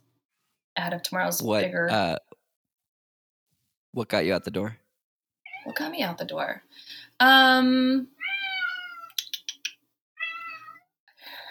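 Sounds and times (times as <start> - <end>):
speech: 0.8 - 2.4, 3.9 - 4.8, 5.6 - 8.2
cat meowing loudly: 5.4 - 5.9, 8.2 - 9.2, 10.2 - 10.9.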